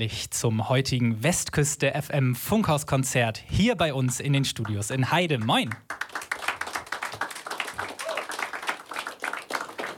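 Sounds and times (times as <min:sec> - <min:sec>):
speech: 0:00.0 - 0:06.0
studio audience applause: 0:05.4 - 0:09.9.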